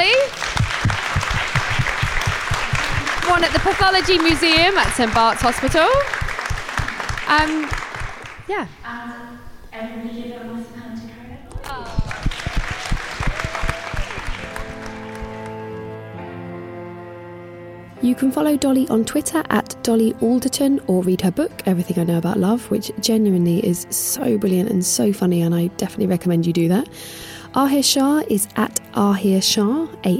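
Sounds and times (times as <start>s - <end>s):
crowd applause: 0.0s - 8.6s, 11.8s - 16.0s
tonal music: 0.0s - 26.4s
speech: 3.4s - 6.2s, 7.3s - 7.8s, 8.5s - 10.5s, 18.0s - 30.1s.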